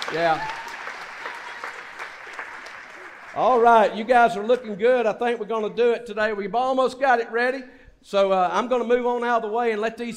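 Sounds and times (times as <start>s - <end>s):
audience clapping for children coming on stage: 0.0s - 4.2s
speech: 0.1s - 0.6s, 3.4s - 10.1s.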